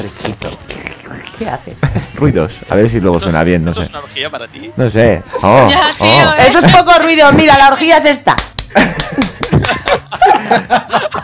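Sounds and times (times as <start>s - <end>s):
speech: 0.0s - 0.5s, 1.4s - 11.2s
applause: 8.4s - 10.0s
laughter: 8.7s - 11.2s.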